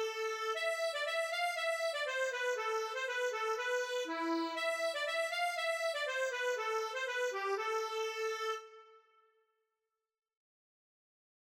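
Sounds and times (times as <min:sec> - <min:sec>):
accordion: 0:00.0 - 0:09.0.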